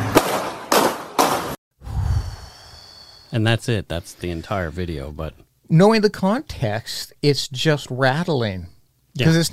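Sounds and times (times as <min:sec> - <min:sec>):
gunshots: 0:00.1 - 0:01.6
speech: 0:03.3 - 0:09.5.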